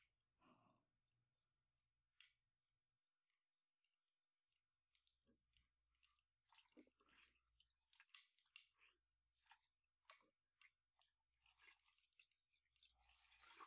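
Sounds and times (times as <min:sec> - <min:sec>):
slow gentle nibbling on the left: 0:05.0 - 0:13.6.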